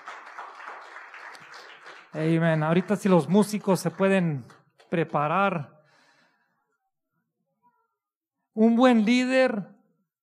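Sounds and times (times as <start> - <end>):
audience applause: 0.0 - 4.6
speech: 2.2 - 5.7, 8.6 - 9.7.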